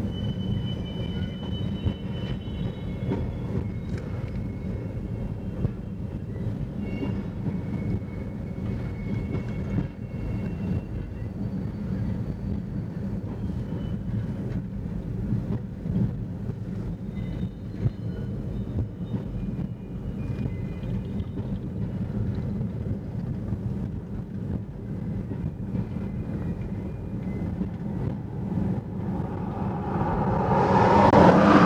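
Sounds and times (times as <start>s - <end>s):
train in Pasco: 0.0s - 31.6s
traffic in Pasco: 25.7s - 31.6s.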